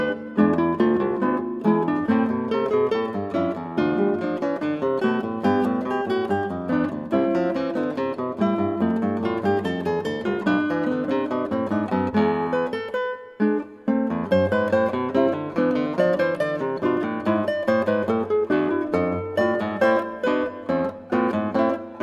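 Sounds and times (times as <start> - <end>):
fugue on 8 string guitar: 0.0 - 22.0.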